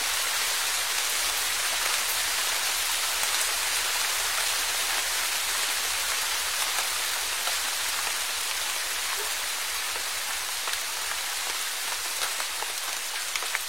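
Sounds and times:
faint fine rain: 0.0s - 13.6s.

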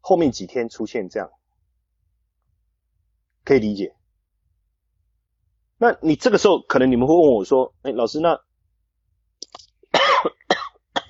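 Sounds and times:
speech: 0.1s - 1.4s, 3.5s - 4.0s, 5.8s - 8.5s
person coughing: 9.9s - 11.0s.

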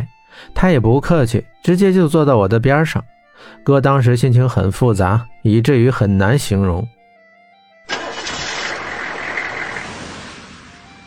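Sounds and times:
speech: 0.4s - 7.0s
vehicle engine starting and idling: 7.9s - 11.0s.

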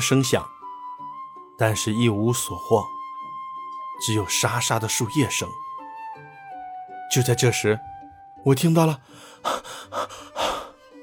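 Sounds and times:
speech: 0.0s - 0.6s, 1.6s - 3.0s, 4.0s - 5.7s, 7.1s - 10.0s
heavy panting breaths: 9.0s - 10.9s.

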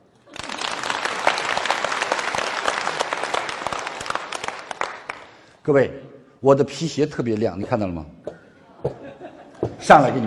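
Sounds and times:
audience applause: 0.3s - 5.3s
speech: 5.6s - 8.2s, 9.8s - 10.2s
laughter: 8.6s - 9.8s.

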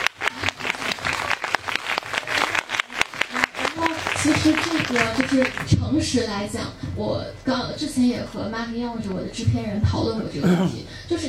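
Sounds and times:
audience applause: 0.0s - 5.7s
speech: 4.2s - 11.2s.

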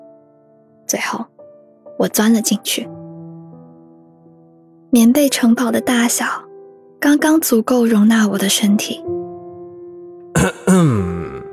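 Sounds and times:
speech: 0.9s - 1.3s, 2.0s - 3.0s, 4.9s - 9.2s
voice performing throat clearing for a storybook character: 10.4s - 11.5s.

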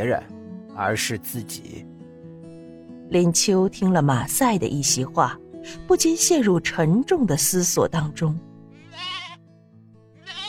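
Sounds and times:
speech: 0.0s - 1.9s, 3.1s - 9.1s
sheep bleating: 8.7s - 9.5s, 10.1s - 10.4s.

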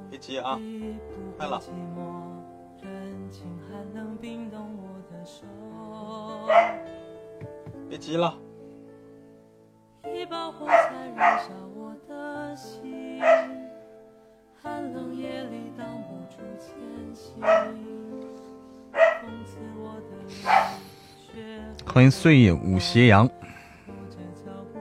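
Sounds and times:
speech: 0.1s - 6.9s, 7.9s - 8.4s, 10.0s - 13.5s, 14.6s - 18.2s, 19.2s - 23.4s
dog barking: 6.5s - 6.8s, 10.7s - 11.5s, 13.2s - 13.6s, 17.4s - 17.8s, 19.0s - 19.3s, 20.4s - 20.9s.

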